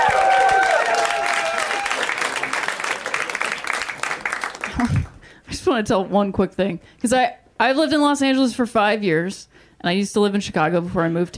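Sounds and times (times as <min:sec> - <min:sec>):
cheers and whistles: 0:00.0 - 0:02.4
crowd applauding for a comedian: 0:00.0 - 0:05.2
speech: 0:05.7 - 0:11.3.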